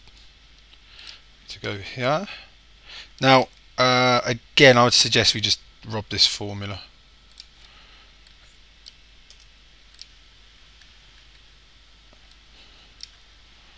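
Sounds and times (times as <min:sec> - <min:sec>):
steady low hiss: 0:00.0 - 0:13.7
speech: 0:01.6 - 0:02.4, 0:03.2 - 0:06.9
computer mouse clicking: 0:07.3 - 0:10.2, 0:13.0 - 0:13.2.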